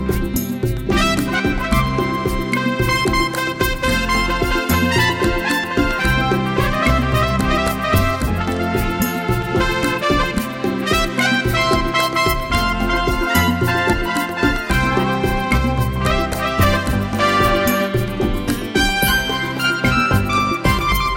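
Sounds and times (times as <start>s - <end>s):
slow bolero music: 0.0s - 21.1s.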